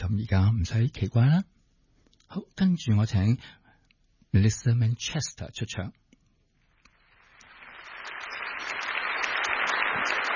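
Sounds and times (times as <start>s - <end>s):
speech: 0.1s - 1.6s, 2.3s - 3.6s, 4.3s - 6.0s
audience applause: 7.2s - 10.3s.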